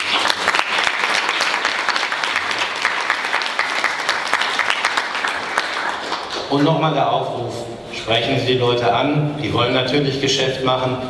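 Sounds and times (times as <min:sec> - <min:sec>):
audience applause: 0:00.0 - 0:06.5
speech: 0:06.5 - 0:11.0.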